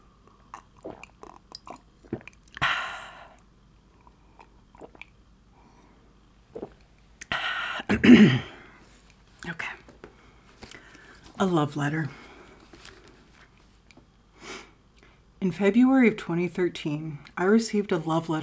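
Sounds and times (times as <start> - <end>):
person drinking water: 0.2 - 8.2
speech: 7.9 - 8.5, 11.4 - 12.2, 15.5 - 18.4.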